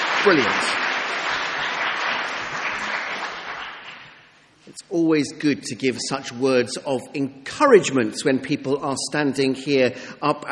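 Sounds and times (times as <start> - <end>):
audience applause: 0.0 - 4.3
speech: 0.2 - 0.9, 4.7 - 10.4.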